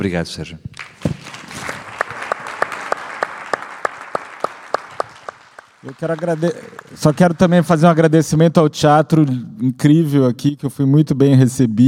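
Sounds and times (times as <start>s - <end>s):
speech: 0.0s - 1.1s, 5.8s - 11.8s
audience applause: 0.8s - 8.0s.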